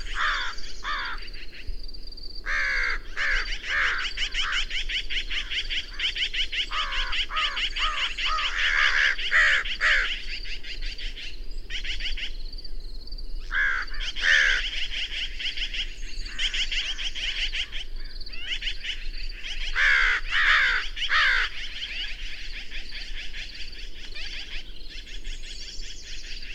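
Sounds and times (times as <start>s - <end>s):
bird cawing: 0.0s - 1.5s, 2.4s - 10.4s, 13.4s - 17.8s, 18.4s - 24.6s.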